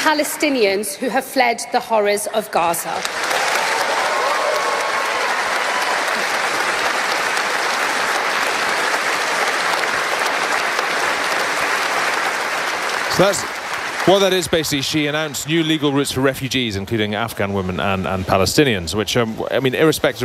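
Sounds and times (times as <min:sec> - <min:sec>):
speech: 0:00.0 - 0:03.5, 0:13.2 - 0:20.2
cheering: 0:03.0 - 0:16.0
crowd applause: 0:03.0 - 0:17.4.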